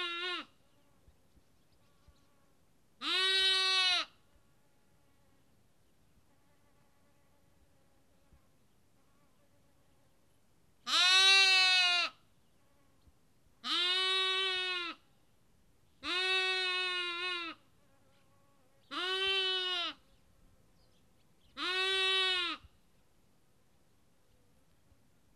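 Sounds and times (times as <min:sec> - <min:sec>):
sheep lamb bleating in Kakopetria Cyprus: 0:00.0 - 0:00.5, 0:03.0 - 0:04.1, 0:10.8 - 0:12.2, 0:13.6 - 0:15.0, 0:16.0 - 0:17.6, 0:18.9 - 0:20.0, 0:21.6 - 0:22.6.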